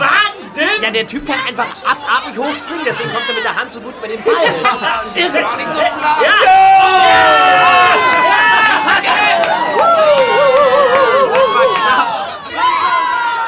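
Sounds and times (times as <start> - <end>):
beach volleyball crowd cheering and roaring: 0.0 - 13.4
speech: 0.9 - 8.2
laughter: 4.0 - 12.4.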